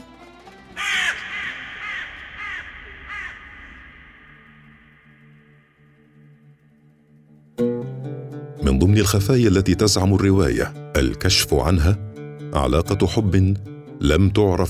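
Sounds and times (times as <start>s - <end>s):
crow cawing: 0.7s - 6.0s
low sustained drone: 1.1s - 7.6s
speech: 8.8s - 14.6s.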